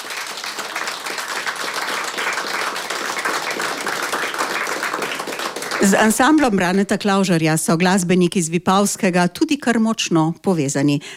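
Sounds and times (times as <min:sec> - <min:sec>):
studio audience applause greeting a folk ensemble: 0:00.0 - 0:06.8
speech: 0:05.8 - 0:11.1.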